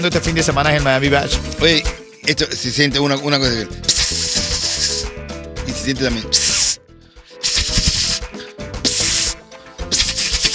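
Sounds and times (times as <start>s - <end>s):
speech: 0.0s - 4.3s, 5.8s - 6.5s
loud airy hissing in spray-like bursts: 3.8s - 5.2s, 6.2s - 10.5s.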